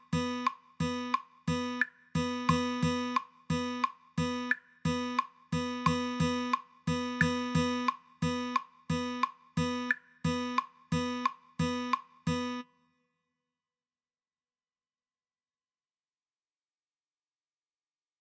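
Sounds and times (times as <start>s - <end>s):
fast rhythm guitar practice: 0.1s - 12.6s.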